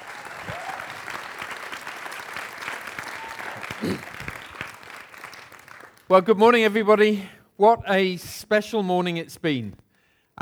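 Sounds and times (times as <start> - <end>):
audience applause: 0.0 - 6.1
speech: 3.8 - 4.1, 6.1 - 9.8.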